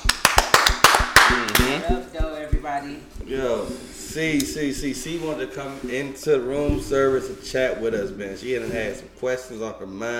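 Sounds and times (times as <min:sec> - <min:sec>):
hand claps from a few people: 0:00.0 - 0:02.0
speech: 0:02.8 - 0:10.1.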